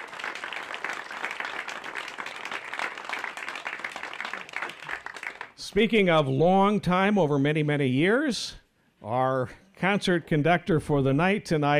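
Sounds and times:
audience applause: 0.0s - 5.6s
speech: 5.6s - 11.7s.

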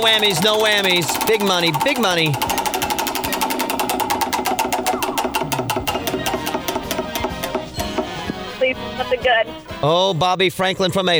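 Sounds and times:
speech: 0.0s - 2.7s, 9.2s - 11.1s
big prize wheel spinning on a game show: 0.0s - 8.1s.

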